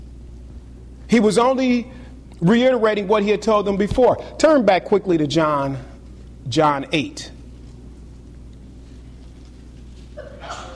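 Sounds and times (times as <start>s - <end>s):
low hum: 0.0s - 10.7s
speech: 1.1s - 7.4s
person sneezing: 10.2s - 10.7s.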